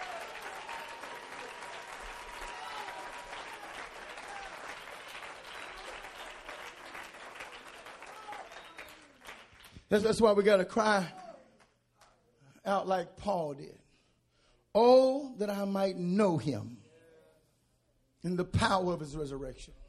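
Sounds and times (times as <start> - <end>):
audience clapping hands: 0.0 - 10.5
speech: 9.9 - 11.2, 12.7 - 13.8, 14.8 - 16.8, 18.2 - 19.8.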